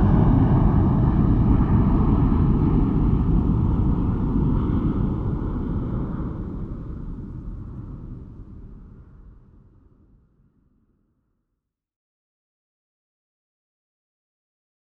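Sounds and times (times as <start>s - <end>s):
jet airplane taking off: 0.0s - 8.0s.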